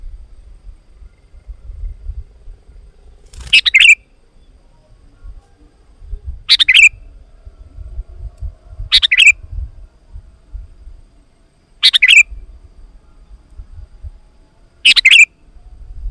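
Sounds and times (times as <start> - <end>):
sooty-headed bulbul song: 3.0 - 15.8.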